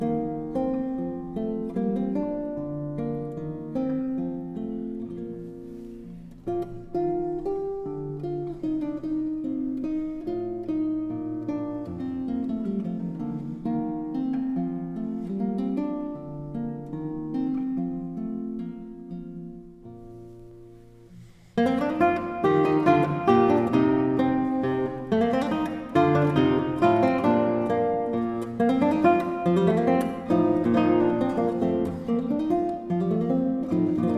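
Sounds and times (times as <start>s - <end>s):
classical guitar piece: 0.0s - 34.1s.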